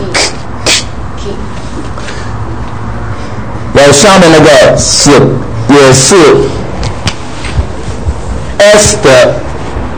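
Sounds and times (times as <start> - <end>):
voice imitating the guttural German CH sound: 0.0 - 1.0
steady low background: 0.0 - 9.9
speech: 3.8 - 6.6, 8.6 - 9.5.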